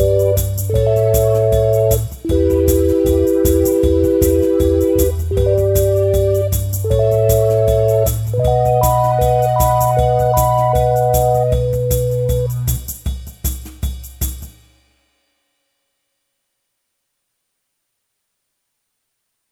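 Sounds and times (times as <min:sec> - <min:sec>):
bottleneck slide prelude: 0:00.0 - 0:12.7.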